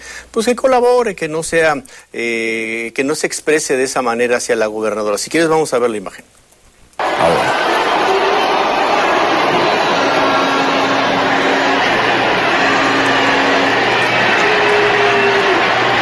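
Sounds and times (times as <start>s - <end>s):
speech: 0.4s - 6.4s
crowd booing: 7.0s - 16.0s.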